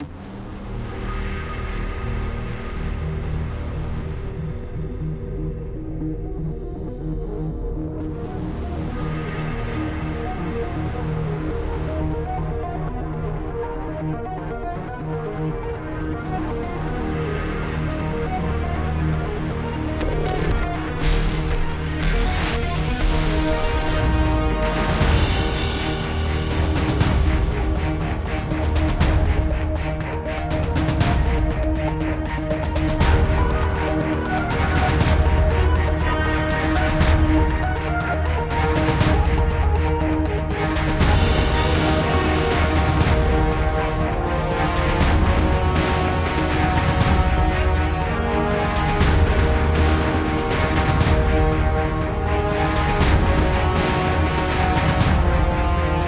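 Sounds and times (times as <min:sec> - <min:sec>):
vehicle journey music: 0:00.0 - 0:56.0.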